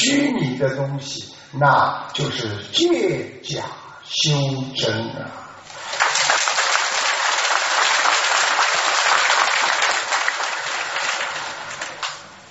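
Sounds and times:
speech: 0:00.1 - 0:05.4
polite lukewarm audience applause: 0:05.7 - 0:12.4.

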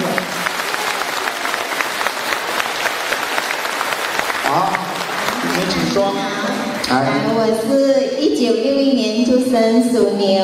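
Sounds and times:
applause from a large audience: 0:00.0 - 0:06.9
speech: 0:06.0 - 0:10.4.

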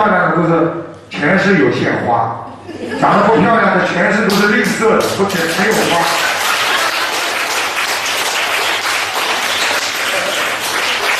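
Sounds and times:
speech: 0:00.0 - 0:06.4
laughter: 0:02.5 - 0:03.7, 0:05.7 - 0:07.8, 0:09.2 - 0:11.1
large crowd applauding: 0:05.0 - 0:11.1.

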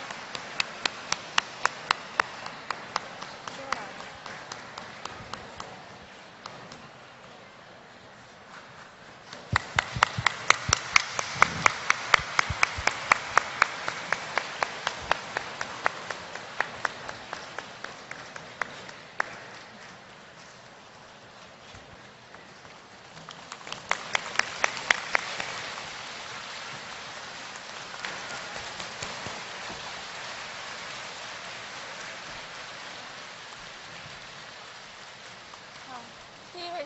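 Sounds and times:
audience applauding: 0:00.0 - 0:05.9, 0:09.4 - 0:19.6, 0:23.2 - 0:36.4.

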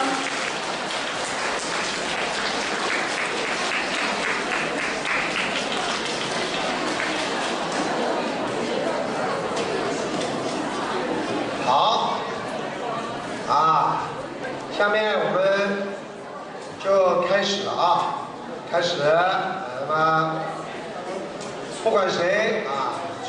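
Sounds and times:
audience applause: 0:00.0 - 0:08.8
faint murmur of voices: 0:00.0 - 0:23.2.

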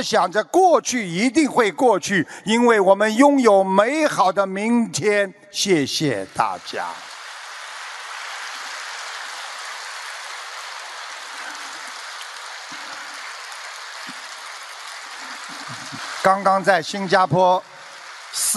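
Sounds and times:
speech: 0:00.0 - 0:07.1, 0:16.2 - 0:17.7, 0:18.3 - 0:18.5
audience applause: 0:06.3 - 0:18.5.

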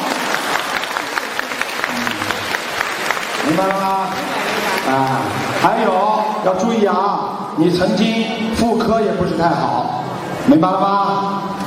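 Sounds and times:
crowd applause: 0:00.0 - 0:06.6
speech: 0:03.5 - 0:11.6.

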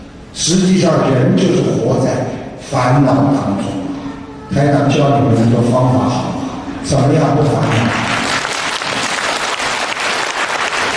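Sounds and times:
speech: 0:00.4 - 0:03.8, 0:04.5 - 0:08.0
audience applause: 0:07.7 - 0:10.9.

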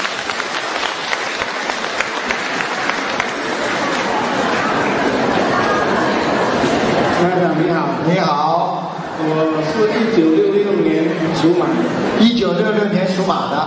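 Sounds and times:
audience applause: 0:00.0 - 0:07.2
speech: 0:07.7 - 0:08.4, 0:09.2 - 0:13.6.

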